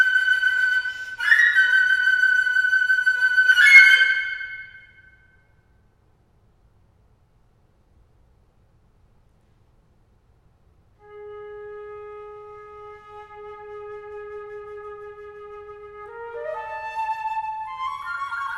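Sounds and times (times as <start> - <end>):
solo flute etude: 0.0 - 5.5, 11.0 - 18.5.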